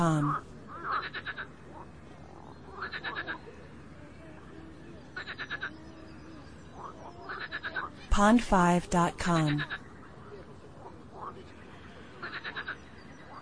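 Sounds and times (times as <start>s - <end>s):
speech: 0.0s - 0.5s, 8.2s - 9.7s
soft background chirping: 0.0s - 13.4s
frog calling in rattling bursts: 0.7s - 3.4s, 5.2s - 5.9s, 6.7s - 8.0s, 10.8s - 11.4s, 12.2s - 13.4s.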